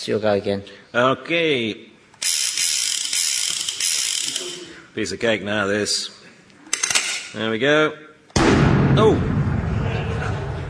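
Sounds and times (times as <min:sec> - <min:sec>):
speech: 0:00.0 - 0:01.9, 0:05.0 - 0:06.2, 0:07.3 - 0:08.1, 0:09.0 - 0:09.4
video game gunfire blast: 0:08.4 - 0:10.5.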